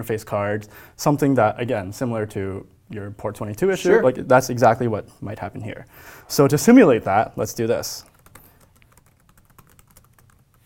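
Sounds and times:
speech: 0.0s - 8.1s
typing on a computer keyboard: 8.0s - 10.6s.

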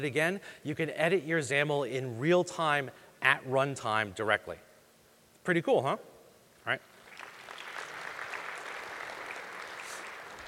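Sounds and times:
speech: 0.0s - 4.7s, 5.5s - 6.9s
audience applause: 7.0s - 10.4s.

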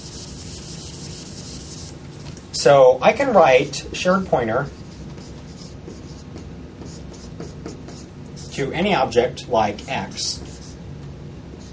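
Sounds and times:
eraser rubbing writing off a board during a lecture: 0.0s - 2.0s, 4.7s - 8.6s, 9.8s - 10.8s, 11.6s - 11.7s
speech: 2.6s - 4.8s, 8.6s - 10.5s.

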